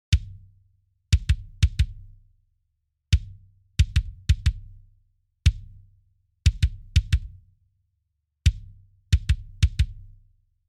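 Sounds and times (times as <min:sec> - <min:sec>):
kick drum: 0:00.0 - 0:02.2, 0:03.1 - 0:05.9, 0:06.5 - 0:07.5, 0:08.5 - 0:10.2.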